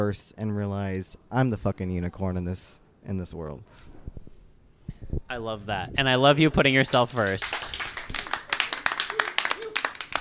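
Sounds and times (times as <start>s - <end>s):
speech: 0.0s - 3.9s, 5.4s - 7.8s
audience hand claps: 6.6s - 10.2s.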